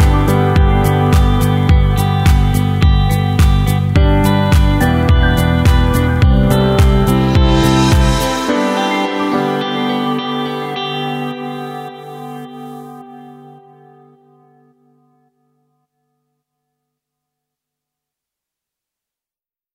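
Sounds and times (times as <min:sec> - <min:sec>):
motivational modern pop rock intro: 0:00.0 - 0:13.5.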